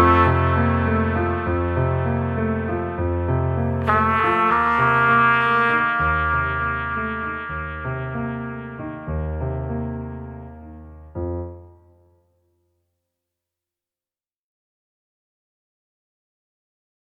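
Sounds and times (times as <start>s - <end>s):
trumpet in a duet with piano: 0.0s - 11.0s
piano in a duet with trumpet: 0.0s - 12.4s.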